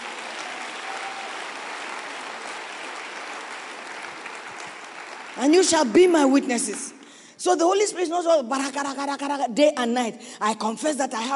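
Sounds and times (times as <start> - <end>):
audience clapping hands: 0.0 - 7.0
speech: 5.4 - 11.3.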